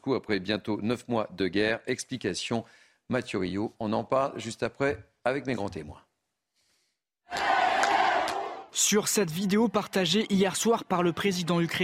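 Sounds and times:
speech: 0:00.0 - 0:06.1, 0:08.8 - 0:11.8
residents of Kherson cheering Ukrainian forces after the Russian withdrawal: 0:07.3 - 0:08.7.

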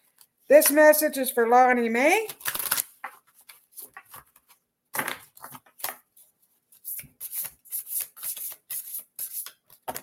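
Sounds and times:
speech: 0:00.5 - 0:02.5
cards shuffled and pulled from a deck during a card reading: 0:02.2 - 0:10.0.

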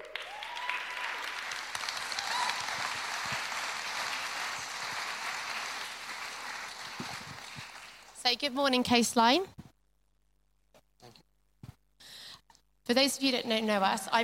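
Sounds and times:
audience applause welcoming speakers to the stage: 0:00.0 - 0:08.2
speech: 0:08.3 - 0:09.6, 0:12.9 - 0:14.2.

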